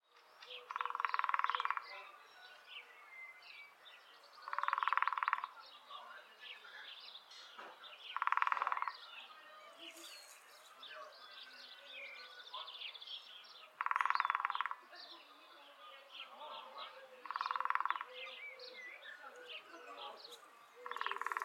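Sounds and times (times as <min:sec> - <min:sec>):
Lesser spotted woodpecker drumming: 0:00.5 - 0:02.3, 0:04.4 - 0:05.6, 0:07.4 - 0:09.2, 0:12.7 - 0:15.1, 0:16.6 - 0:21.4.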